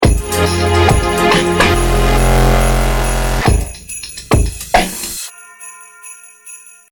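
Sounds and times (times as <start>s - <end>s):
dubstep Christmas loop: 0.2s - 3.7s.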